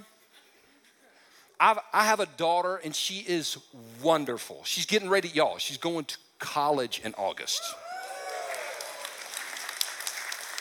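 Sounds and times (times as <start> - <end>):
speech: 1.6 - 7.8
audience applause: 7.8 - 10.5.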